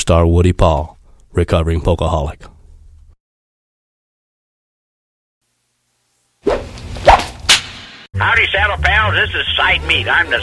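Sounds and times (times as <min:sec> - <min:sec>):
speech: 0:00.0 - 0:02.5, 0:08.2 - 0:10.4
whip swung and cracked: 0:06.4 - 0:07.8.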